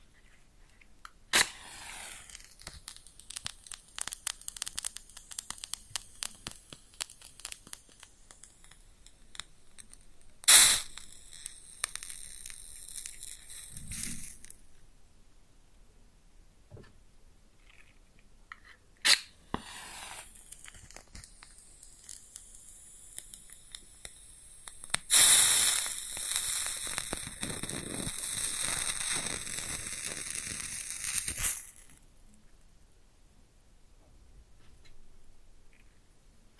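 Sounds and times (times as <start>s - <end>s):
match striking and burning: 1.3s - 14.6s, 19.0s - 32.0s
bright sizzling burst: 1.3s - 14.7s, 19.1s - 32.0s.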